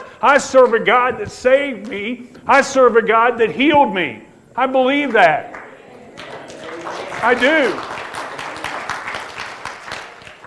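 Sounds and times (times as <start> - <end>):
speech: 0.2 - 5.6, 7.2 - 7.9
audience applause: 5.5 - 10.4.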